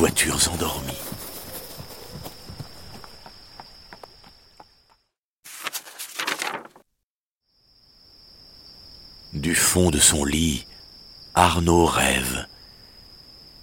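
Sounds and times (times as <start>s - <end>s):
speech: 0.0s - 1.1s, 9.5s - 10.7s, 11.4s - 12.5s
horse hooves trotting: 0.0s - 5.0s.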